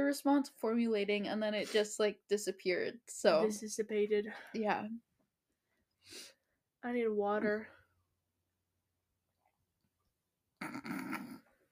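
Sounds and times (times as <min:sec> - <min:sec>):
speech: 0:00.1 - 0:05.1, 0:06.0 - 0:07.8, 0:10.6 - 0:11.2
person swallowing saliva: 0:10.6 - 0:11.5.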